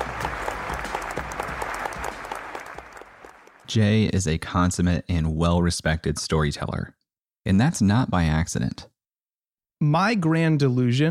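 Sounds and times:
audience applause: 0:00.0 - 0:03.7
speech: 0:03.7 - 0:08.9, 0:09.8 - 0:11.0.

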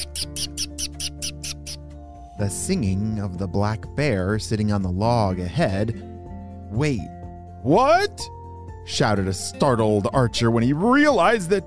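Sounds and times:
animals chittering in tree branches: 0:00.0 - 0:01.9
speech: 0:02.4 - 0:06.1, 0:06.7 - 0:11.6.

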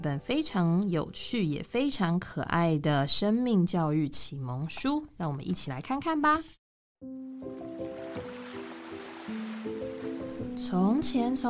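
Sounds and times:
speech: 0:00.0 - 0:07.6, 0:10.6 - 0:11.4
soft sustained musical notes: 0:07.0 - 0:11.4
ocean waves: 0:07.5 - 0:10.6.

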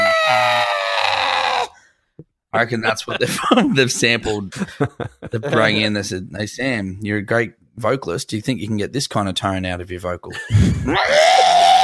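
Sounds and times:
squeezed rubber chicken squealing: 0:00.0 - 0:01.8, 0:10.9 - 0:11.8
speech: 0:02.5 - 0:11.5
laughter: 0:02.8 - 0:05.9.

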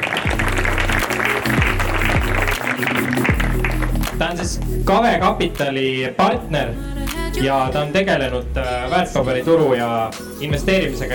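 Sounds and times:
audience clapping: 0:00.0 - 0:04.7
low thumping musical bass line: 0:00.3 - 0:05.7, 0:06.4 - 0:09.8, 0:10.4 - 0:11.1
speech: 0:04.3 - 0:11.1.

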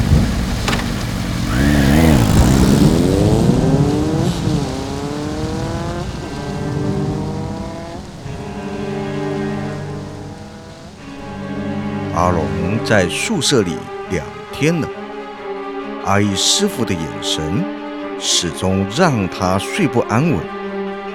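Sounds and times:
motorcycle engine revving while riding off during a typhoon: 0:00.0 - 0:14.5
heavy rain and strong wind during a typhoon: 0:00.0 - 0:16.0
speech: 0:12.9 - 0:15.0, 0:16.0 - 0:20.6.

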